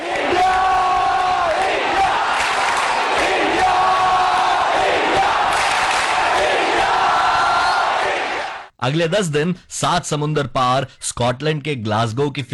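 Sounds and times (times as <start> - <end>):
crowd chanting: 0.0 - 8.8
speech: 8.8 - 12.5.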